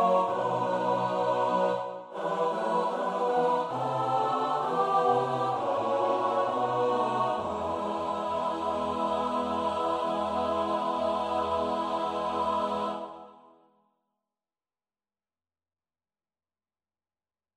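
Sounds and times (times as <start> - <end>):
soprano alto tenor bass voices: 0.0 - 13.2.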